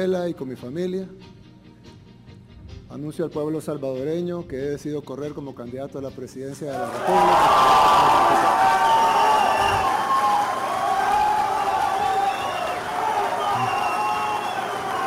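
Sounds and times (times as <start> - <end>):
speech: 0.0 - 1.4, 2.9 - 9.0
crowd applause and cheering: 6.7 - 15.0.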